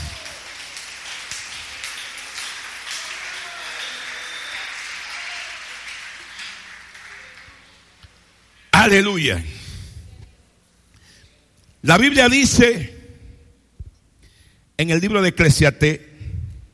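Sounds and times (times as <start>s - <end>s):
audience applause: 0.0s - 8.0s
speech: 8.8s - 9.6s, 11.8s - 12.9s, 14.8s - 16.1s.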